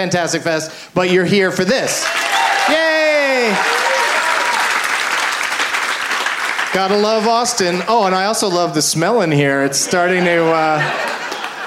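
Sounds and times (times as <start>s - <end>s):
speech: 0.0s - 3.9s, 6.7s - 11.1s
audience applause at a live comedy show in Austin: 1.9s - 8.5s, 10.8s - 11.6s
laughter: 9.6s - 11.6s.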